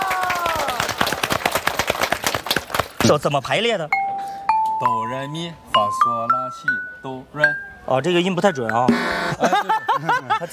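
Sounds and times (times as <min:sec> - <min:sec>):
audience applause: 0:00.0 - 0:03.0
speech: 0:03.0 - 0:04.0, 0:04.8 - 0:10.5
laughter: 0:09.3 - 0:10.5.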